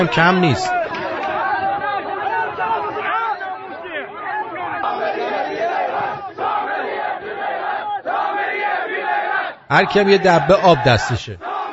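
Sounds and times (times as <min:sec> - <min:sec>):
speech: 0:00.0 - 0:00.8, 0:09.7 - 0:11.5
large protesting crowd shouting and chanting: 0:00.0 - 0:11.7.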